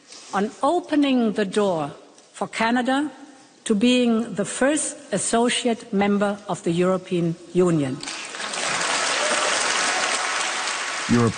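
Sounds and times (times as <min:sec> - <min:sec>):
speech: 0:00.3 - 0:08.2, 0:11.1 - 0:11.3
European Parliament members applauding in Strasbourg, France: 0:08.1 - 0:11.3.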